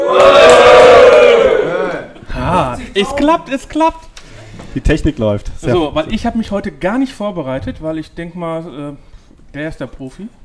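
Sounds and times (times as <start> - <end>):
live audience cheering and shouting: 0.0 - 2.7
speech: 3.0 - 4.1, 4.7 - 10.4.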